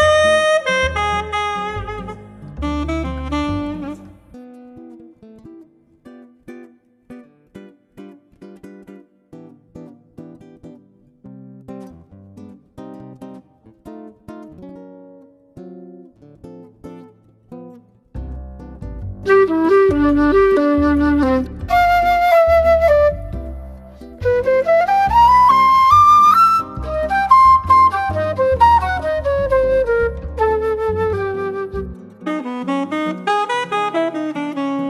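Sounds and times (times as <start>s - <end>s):
classic jazz music: 0.0s - 4.4s, 19.3s - 34.8s.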